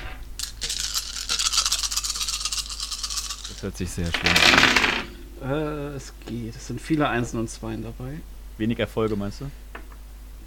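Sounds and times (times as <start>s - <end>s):
ten six-sided dice rolling: 0.4s - 5.1s
speech: 3.6s - 9.6s.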